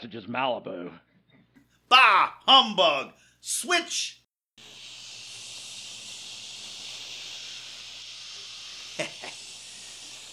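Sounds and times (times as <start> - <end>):
speech: 0.0 - 1.1, 1.9 - 4.8, 9.0 - 9.2
static hiss: 3.5 - 10.3.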